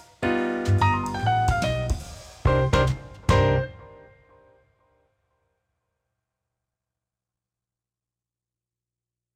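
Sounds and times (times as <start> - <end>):
landing background music: 0.0 - 4.7.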